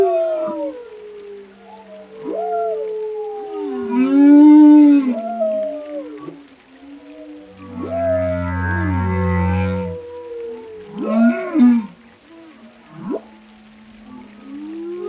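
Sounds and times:
whale song: 0.0 - 15.0
low steady hum: 7.4 - 15.0.

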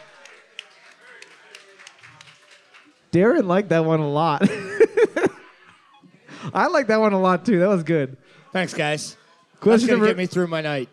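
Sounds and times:
small group applauding: 0.0 - 3.1
speech: 3.1 - 5.2, 6.6 - 10.9
laughter: 4.4 - 6.7, 9.6 - 10.4.

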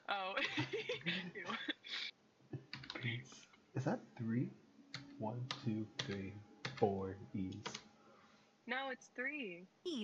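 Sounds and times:
people chatting: 0.0 - 4.6, 5.2 - 7.8, 8.7 - 10.0
laughter: 0.1 - 2.1
speech: 3.8 - 4.6, 5.2 - 7.8, 8.7 - 10.0
keyboard clicks from typing on a computer keyboard: 5.0 - 7.8.

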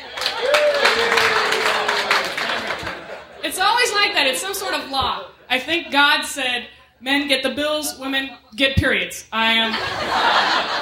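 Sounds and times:
audience applause: 0.0 - 3.4
laughter: 0.0 - 6.3, 9.6 - 10.8
speech: 4.2 - 10.8.

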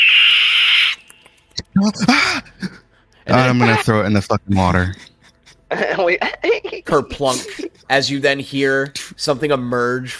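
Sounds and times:
creature high-pitched squeal: 0.0 - 1.1, 3.4 - 3.8
creature chattering voice-like squeaks and trills: 0.0 - 1.2
speech: 1.8 - 2.5, 3.3 - 5.1, 5.7 - 10.1
laughter: 4.6 - 8.2.

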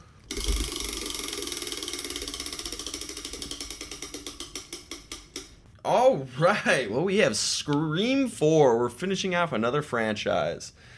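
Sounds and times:
prize wheel spinning and clicking: 0.3 - 5.6
speech: 5.8 - 10.9.

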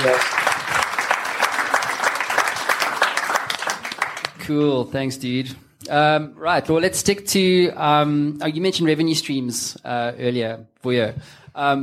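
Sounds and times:
speech: 0.0 - 0.4, 4.5 - 11.8
audience round of applause: 0.0 - 4.4.

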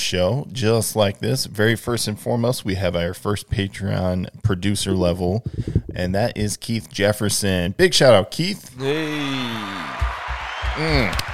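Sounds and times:
speech: 0.1 - 9.9, 10.8 - 11.3
applause: 9.8 - 11.3.

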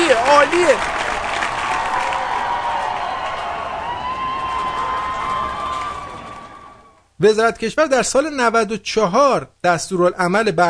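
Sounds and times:
audience applause: 0.0 - 7.0
speech: 0.2 - 1.1, 7.2 - 10.6.

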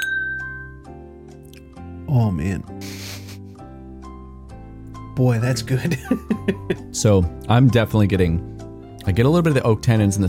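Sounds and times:
glasses clinking in a toast: 0.0 - 0.8
speech: 2.1 - 3.0, 5.2 - 10.2
laughter: 2.8 - 3.4, 5.4 - 6.9.

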